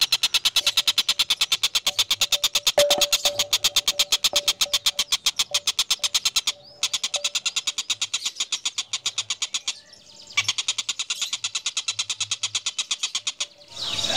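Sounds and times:
Van Hasselt's sunbird song: 0.0s - 14.1s.

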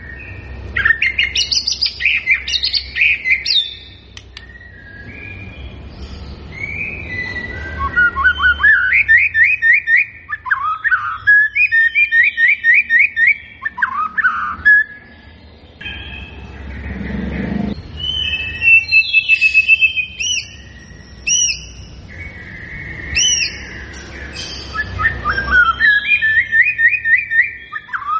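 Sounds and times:
white-rumped shama singing fluty whistles and warbling phrases: 0.0s - 5.6s, 6.5s - 15.1s, 17.8s - 28.1s.

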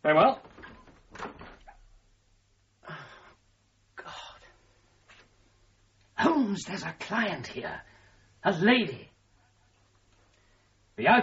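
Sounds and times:
door being opened: 0.2s - 1.9s
speech: 6.6s - 9.1s, 11.0s - 11.2s.

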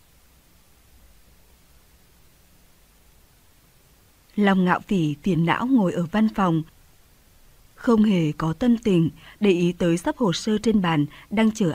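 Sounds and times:
speech: 4.4s - 6.7s, 7.8s - 11.7s
phone line static after hang-up: 4.4s - 6.8s, 7.8s - 11.7s.

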